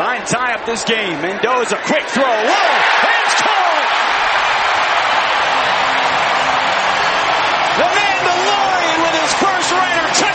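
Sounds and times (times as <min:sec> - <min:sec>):
stadium crowd cheering: 0:00.0 - 0:10.3
speech: 0:00.2 - 0:03.8.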